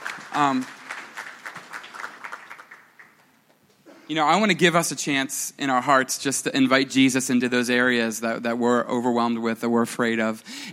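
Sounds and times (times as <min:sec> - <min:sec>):
audience applause: 0:00.0 - 0:03.3
speech: 0:00.4 - 0:00.8, 0:04.1 - 0:10.7.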